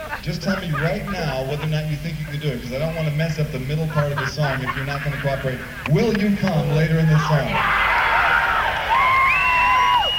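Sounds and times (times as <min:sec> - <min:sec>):
laughter: 0:00.0 - 0:06.8
speech: 0:00.2 - 0:07.9
audience cheering and whooping at a concert: 0:07.5 - 0:10.1.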